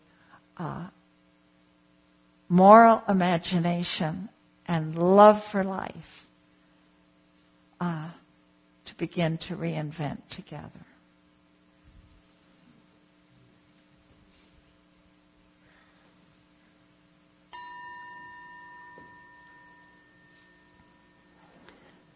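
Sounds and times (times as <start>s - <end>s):
speech: 0.6s - 1.0s, 2.5s - 6.3s, 7.8s - 8.2s, 8.9s - 10.9s
meditation chime: 17.5s - 22.1s.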